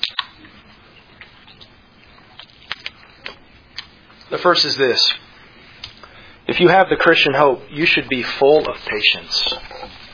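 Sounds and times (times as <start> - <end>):
speaker drinking water: 0.0 - 4.2
speech: 4.3 - 5.2, 6.5 - 10.0.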